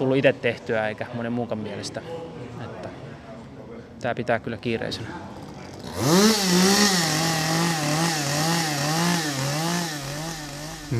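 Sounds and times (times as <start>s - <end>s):
speech: 0.0s - 2.4s, 4.0s - 5.3s, 5.9s - 6.8s
chainsaws cutting wood: 5.5s - 10.9s.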